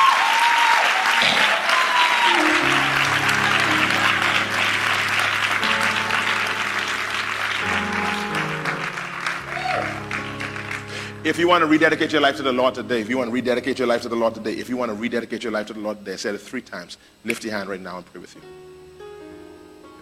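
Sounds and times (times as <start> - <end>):
audience clapping hands: 0.0 - 12.0
speech: 11.3 - 18.6.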